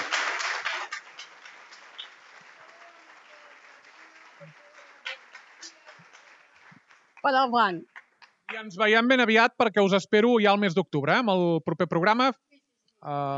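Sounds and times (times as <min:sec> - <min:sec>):
audience applause: 0:00.0 - 0:08.7
speech: 0:07.2 - 0:07.9, 0:08.5 - 0:12.4, 0:13.0 - 0:13.3.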